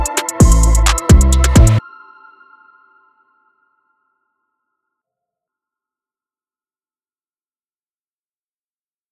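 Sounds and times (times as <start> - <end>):
hip hop music: 0.0 - 1.8.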